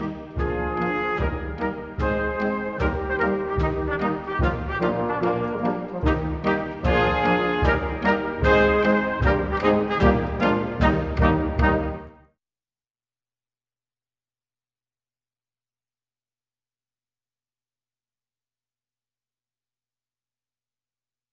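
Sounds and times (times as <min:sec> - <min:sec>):
Schottische quadrille dance music: 0:00.0 - 0:12.1.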